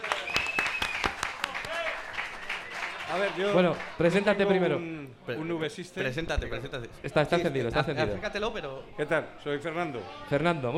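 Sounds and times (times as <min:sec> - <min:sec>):
audience applause for a volunteer: 0:00.0 - 0:04.3
speech: 0:03.1 - 0:10.7.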